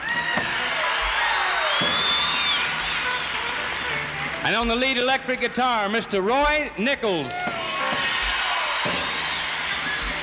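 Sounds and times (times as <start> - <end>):
whoops and whistles: 0.0 - 3.6, 7.3 - 10.2
crowd applauding: 0.0 - 10.2
speech: 4.5 - 7.5.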